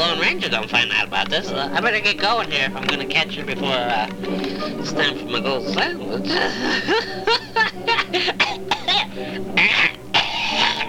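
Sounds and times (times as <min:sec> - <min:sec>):
speech: 0:00.3 - 0:08.6
laughter: 0:04.4 - 0:05.3, 0:06.2 - 0:08.5, 0:09.3 - 0:10.8
person coughing: 0:06.3 - 0:10.8.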